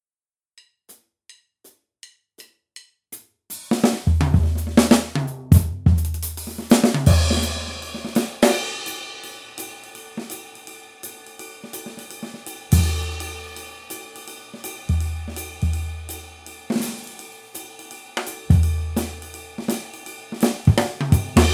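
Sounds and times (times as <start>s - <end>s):
swing music: 3.7s - 9.2s, 11.3s - 13.9s, 14.6s - 17.3s, 18.2s - 21.5s.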